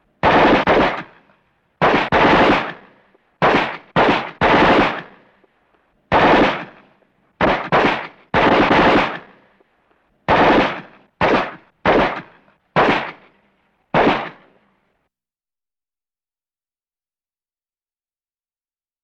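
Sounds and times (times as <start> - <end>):
semi-automatic gunshots: 0.2 - 5.4, 6.1 - 9.6, 10.3 - 14.6.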